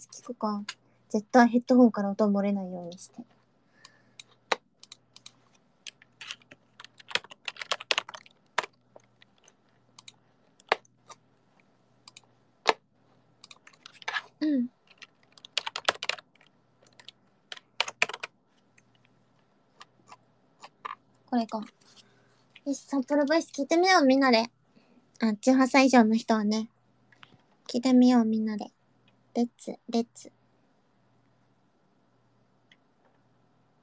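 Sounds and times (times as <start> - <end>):
speech: 0.0 - 3.4, 14.4 - 14.7, 21.3 - 21.8, 22.6 - 24.6, 25.2 - 26.7, 27.7 - 30.4
typing on a computer keyboard: 3.8 - 11.2, 13.4 - 14.1, 14.8 - 19.0.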